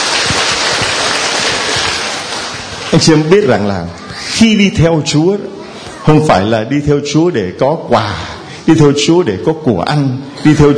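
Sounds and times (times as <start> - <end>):
big round of crowd applause: 0.0 - 3.8
speech: 2.9 - 10.7.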